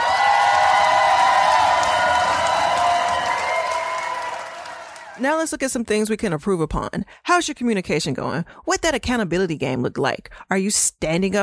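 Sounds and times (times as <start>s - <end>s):
cheers and whoops: 0.0s - 5.2s
crowd applauding: 0.0s - 5.2s
speech: 5.2s - 11.4s.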